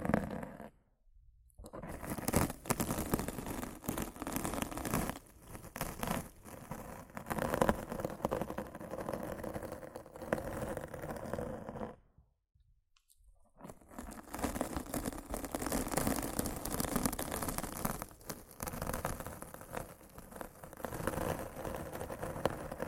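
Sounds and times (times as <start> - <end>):
rough scratching and brushing against a microphone: 0.0 - 0.7, 1.7 - 12.0, 13.6 - 22.8.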